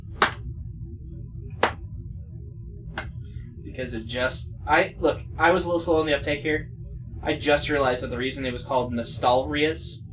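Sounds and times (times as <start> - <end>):
very slow clap: 0.2 - 0.4, 1.6 - 1.8
speech: 3.7 - 10.0.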